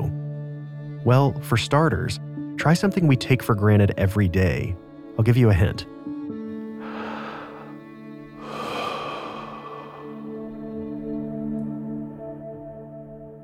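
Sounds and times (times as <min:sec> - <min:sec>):
speech: 0:01.1 - 0:05.9
slow deep breathing in and out: 0:06.8 - 0:11.2.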